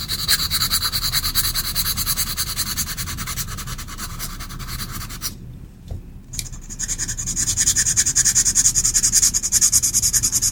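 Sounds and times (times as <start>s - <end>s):
soft pencil tracing on paper: 0.0s - 5.3s, 6.5s - 10.5s.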